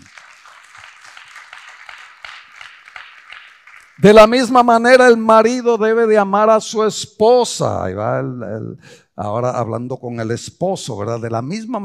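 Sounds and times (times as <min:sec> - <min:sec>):
audience applause: 0:00.0 - 0:04.4
speech: 0:04.0 - 0:11.8.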